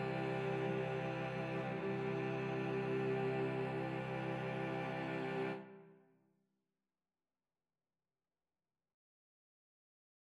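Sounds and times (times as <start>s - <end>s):
cello quartet: 0.0s - 5.8s.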